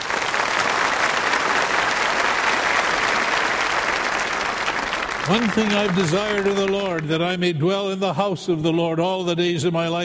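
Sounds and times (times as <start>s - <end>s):
church congregation applauding: 0.0s - 7.7s
speech: 5.3s - 10.0s.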